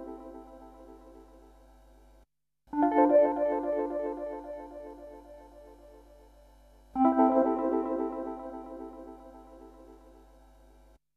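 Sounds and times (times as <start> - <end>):
electric piano: 2.8 - 6.0, 7.0 - 10.0.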